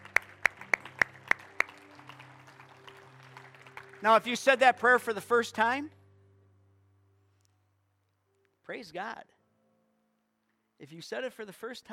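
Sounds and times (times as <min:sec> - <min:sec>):
audience clapping: 0:00.0 - 0:05.2
speech: 0:04.0 - 0:06.0, 0:08.7 - 0:09.4, 0:10.8 - 0:11.9.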